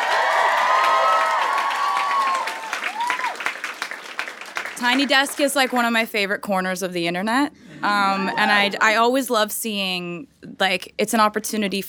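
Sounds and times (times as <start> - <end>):
audience applause: 0.0 - 5.4
speech: 4.8 - 11.8.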